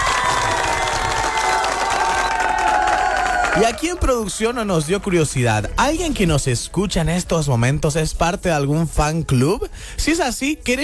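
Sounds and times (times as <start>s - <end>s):
applause and cheering: 0.0s - 5.7s
speech: 3.6s - 10.8s.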